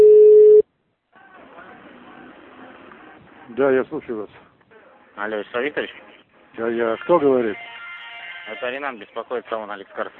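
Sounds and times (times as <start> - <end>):
telephone tone as a call is being connected: 0.0 - 0.6
speech: 3.5 - 4.5, 5.2 - 7.8, 8.5 - 10.1.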